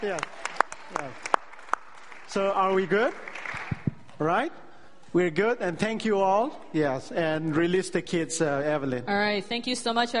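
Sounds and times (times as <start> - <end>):
speech: 0.0 - 1.3, 2.3 - 3.3, 4.2 - 10.1
audience applause: 0.0 - 4.3.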